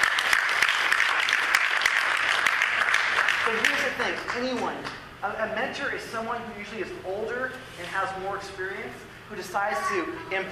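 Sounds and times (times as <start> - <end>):
audience applause: 0.0 - 4.6
speech: 3.5 - 10.5.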